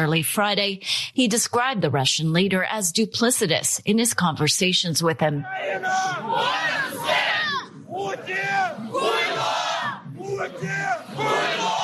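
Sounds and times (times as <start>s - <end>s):
speech: 0.0s - 7.3s
street protest crowd shouting: 5.4s - 11.8s.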